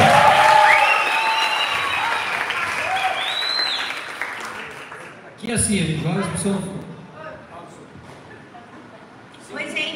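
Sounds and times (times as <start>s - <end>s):
audience whistles and cheers: 0.0s - 4.1s
audience applause: 0.0s - 5.2s
speech: 5.6s - 6.9s.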